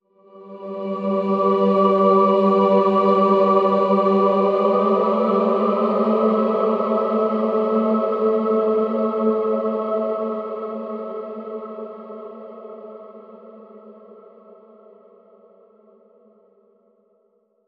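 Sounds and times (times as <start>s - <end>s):
heavenly angelic voices bending: 0.3s - 11.2s.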